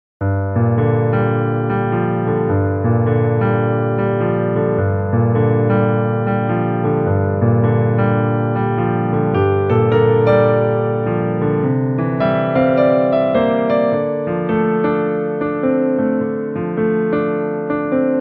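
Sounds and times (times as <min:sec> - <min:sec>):
piano: 0:00.2 - 0:18.1.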